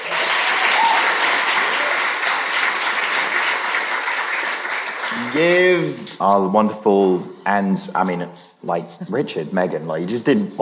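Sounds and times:
audience applause: 0:00.0 - 0:06.0
speech: 0:05.4 - 0:10.6.

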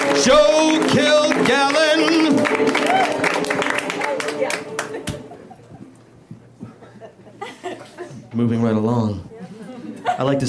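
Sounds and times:
audience applause: 0:00.0 - 0:05.7
speech: 0:00.2 - 0:02.4, 0:08.4 - 0:09.3, 0:10.2 - 0:10.4
crowd voices and laughter: 0:02.6 - 0:08.4, 0:09.2 - 0:10.4.

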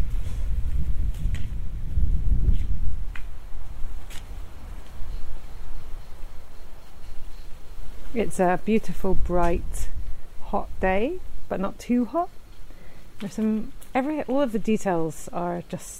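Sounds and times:
wind on a hilltop buffeting the microphone: 0:00.0 - 0:12.2
speech: 0:08.2 - 0:12.4, 0:13.2 - 0:15.9.

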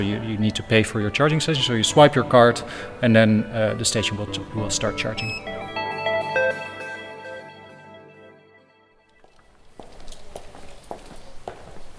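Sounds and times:
speech: 0:00.0 - 0:05.7
footsteps walking past an EV charger development and testing lab: 0:09.0 - 0:11.9.

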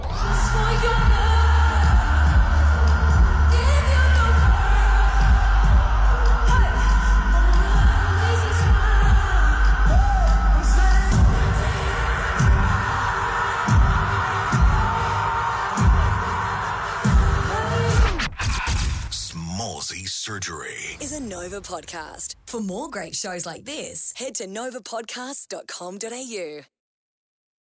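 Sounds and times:
concert crowd screaming and cheering: 0:00.0 - 0:18.3
speech: 0:21.6 - 0:26.8.

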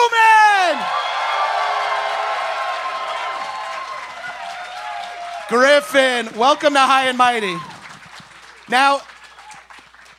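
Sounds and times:
audience applause and cheering welcoming a guest at a live show: 0:00.0 - 0:10.1
speech: 0:05.5 - 0:07.7, 0:08.7 - 0:09.1.

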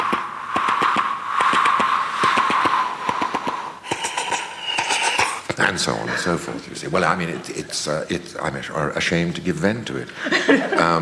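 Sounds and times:
voice imitating an old-fashioned steam train: 0:00.0 - 0:06.4
speech: 0:05.7 - 0:11.0
laughter: 0:10.1 - 0:11.0.

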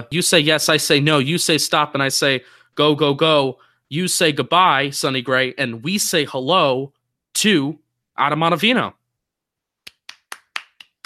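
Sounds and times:
speech: 0:00.0 - 0:09.0
hand clapping, round of applause: 0:09.8 - 0:11.0.

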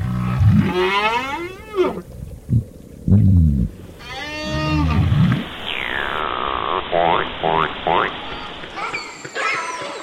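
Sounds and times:
whale song underwater: 0:00.0 - 0:07.2.

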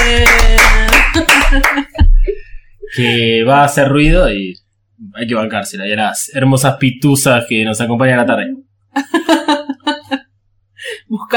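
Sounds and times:
loud applause: 0:00.0 - 0:02.0
laughter: 0:00.0 - 0:03.3, 0:09.0 - 0:10.2
speech: 0:03.0 - 0:09.4.

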